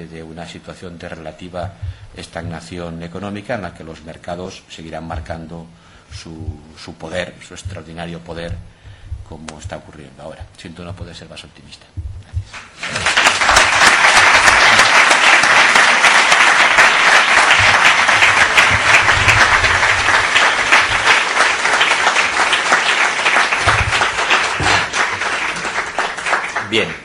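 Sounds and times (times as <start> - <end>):
speech: 0.0 - 13.1, 26.7 - 27.0
audience applause after a lecture: 12.6 - 27.0.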